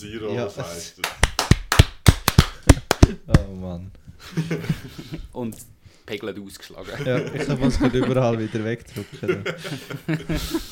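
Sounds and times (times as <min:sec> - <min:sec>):
speech: 0:00.0 - 0:01.3, 0:02.6 - 0:10.7
hand clapping: 0:01.0 - 0:03.5
laughter: 0:04.2 - 0:05.3, 0:06.8 - 0:10.7.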